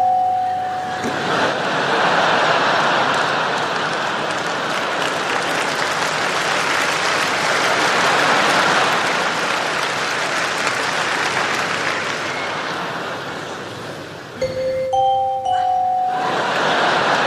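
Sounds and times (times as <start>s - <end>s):
two-note doorbell chime rising by a tritone: 0.0s - 1.2s, 14.4s - 16.8s
applause-like crowd noise: 0.0s - 17.2s
laughter: 0.7s - 5.3s, 7.3s - 9.5s, 12.3s - 13.9s, 15.6s - 17.2s.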